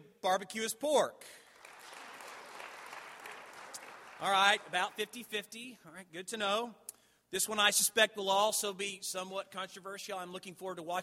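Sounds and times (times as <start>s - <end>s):
speech: 0.2s - 1.4s, 4.2s - 11.0s
audience applause: 1.5s - 5.1s.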